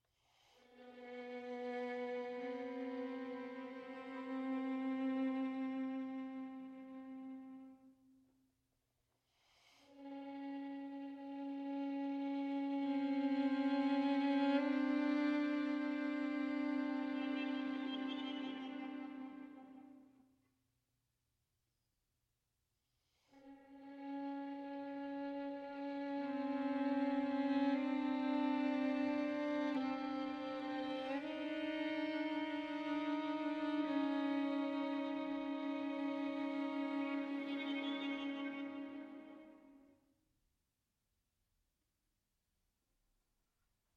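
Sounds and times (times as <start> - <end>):
string quartet: 0.8 - 7.7, 10.0 - 20.2, 25.0 - 39.7.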